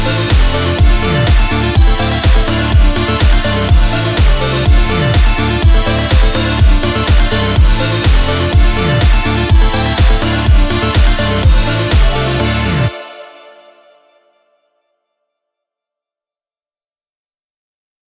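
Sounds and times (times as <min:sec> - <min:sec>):
slide bass: 0:00.0 - 0:12.9.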